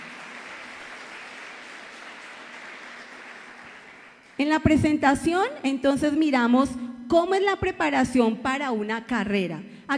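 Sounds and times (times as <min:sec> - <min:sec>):
crowd applauding: 0:00.0 - 0:04.4
speech: 0:04.4 - 0:09.9.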